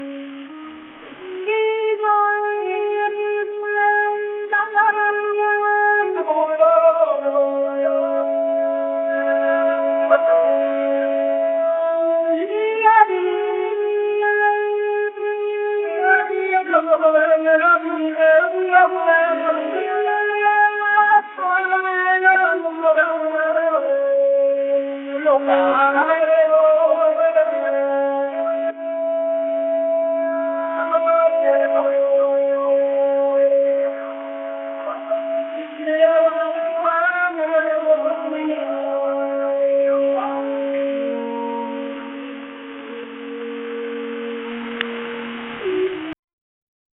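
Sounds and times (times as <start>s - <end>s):
1940s Chilean radio music: 0.0s - 13.6s, 14.3s - 46.1s.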